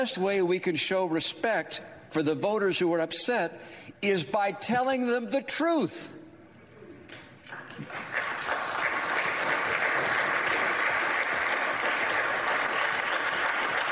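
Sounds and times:
speech: 0.0 - 6.2, 7.7 - 8.3
large crowd standing ovation applause: 7.4 - 13.9.

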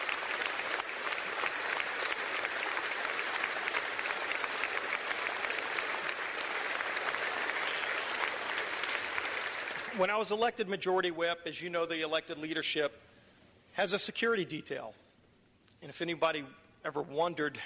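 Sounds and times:
standing ovation applause for the Capitol Police: 0.0 - 10.2
speech: 10.0 - 13.0, 13.8 - 15.0, 15.8 - 17.6.

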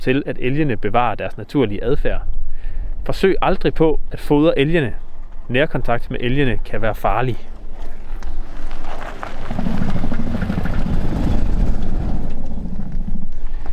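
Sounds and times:
speech: 0.0 - 2.4, 3.0 - 7.5
car driving over a cattle grid: 7.5 - 13.7.

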